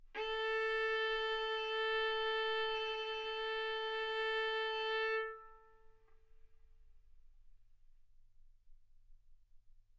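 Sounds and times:
violin bowed mezzo-forte on the A string, A4 and B4: 0.0 - 6.0.

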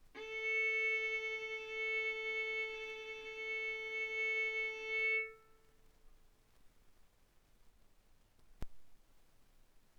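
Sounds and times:
violin bowed mezzo-forte on the A string, A4 and B4: 0.0 - 5.6.

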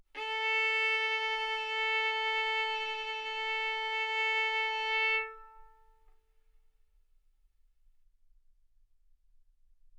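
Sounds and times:
violin bowed arco notes: 0.2 - 6.1.

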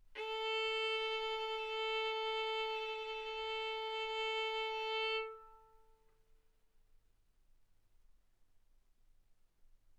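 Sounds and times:
violin bowed mezzo-forte on the A string, A4 and B4: 0.0 - 5.9.

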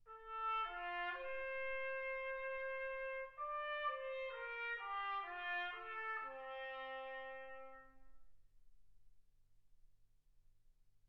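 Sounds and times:
trumpet: 0.1 - 8.3.

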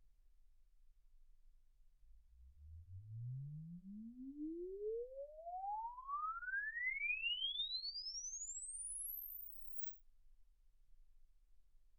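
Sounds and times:
exponential sine sweep from 10 Hz to 24 kHz: 2.6 - 9.9.

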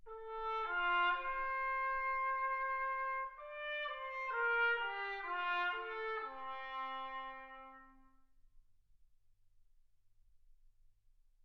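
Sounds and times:
trumpet: 0.0 - 8.3.

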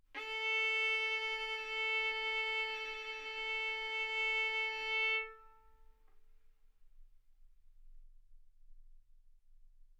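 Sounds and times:
violin bowed arco notes: 0.2 - 5.8.

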